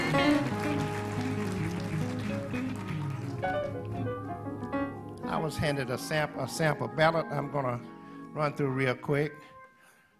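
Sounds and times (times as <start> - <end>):
audience applause: 0.0 - 4.1
sustained musical tones: 0.0 - 8.5
speech: 5.5 - 9.5.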